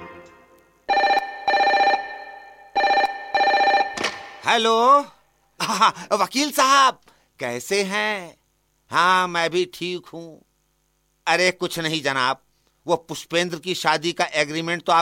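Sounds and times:
telephone ringing while placing a call: 0.9 - 4.2
speech: 5.8 - 10.5, 11.3 - 15.0.

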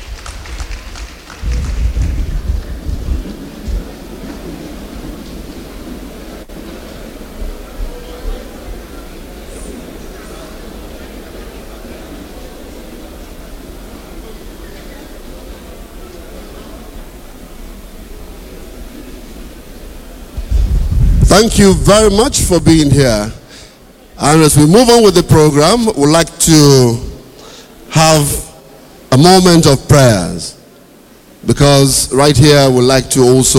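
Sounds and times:
audience applause: 0.0 - 5.8
speech: 21.3 - 23.4, 24.2 - 27.1, 27.9 - 28.4, 29.1 - 30.5, 31.4 - 33.5.

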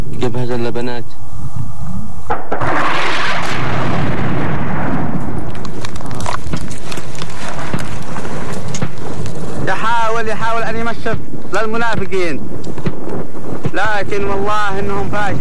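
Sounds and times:
speech: 0.2 - 1.6, 9.9 - 13.0, 13.7 - 15.3
explosion as enemy aircraft is downed: 2.3 - 9.8
crackles and pops: 2.3 - 14.6.

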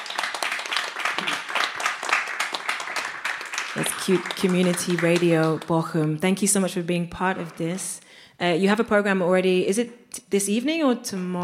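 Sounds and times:
round of applause: 0.0 - 6.1, 7.1 - 8.0
speech: 3.8 - 11.4.

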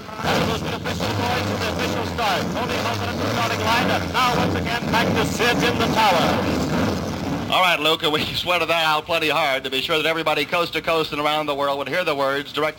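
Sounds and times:
race car engines starting and revving: 0.0 - 8.1
crowd noise: 0.0 - 11.2
speech: 0.6 - 12.7.

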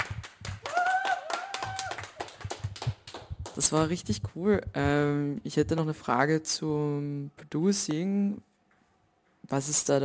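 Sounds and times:
crowd clapping: 0.0 - 3.7
speech: 3.6 - 8.5, 9.5 - 10.0.

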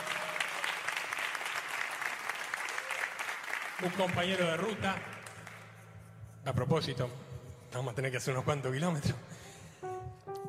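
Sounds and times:
audience applause at a gathering: 0.0 - 5.6
speech: 3.8 - 5.2, 6.4 - 9.2.

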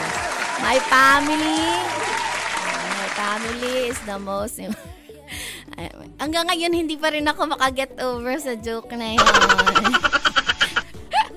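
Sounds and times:
audience clapping for the Santos family: 0.0 - 4.3
speech: 0.6 - 2.2, 3.2 - 5.1, 5.8 - 10.3
laughter: 9.2 - 11.3.

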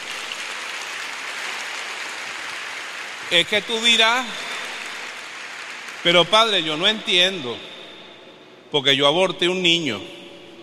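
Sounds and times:
audience applause: 0.0 - 6.7
speech: 3.3 - 4.5, 6.0 - 7.7, 8.7 - 10.2.

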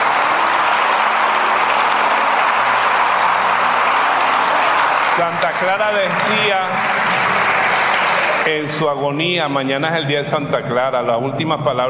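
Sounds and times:
audience applause: 0.0 - 9.2
speech: 5.2 - 7.2, 8.4 - 11.8.

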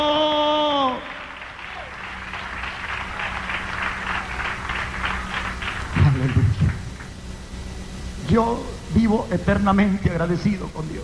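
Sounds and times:
audience applauding: 0.8 - 7.2
speech: 8.3 - 11.0.

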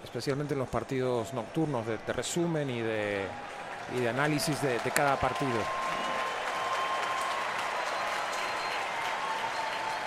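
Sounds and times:
speech: 0.1 - 5.9
stadium crowd applause: 3.0 - 10.0.

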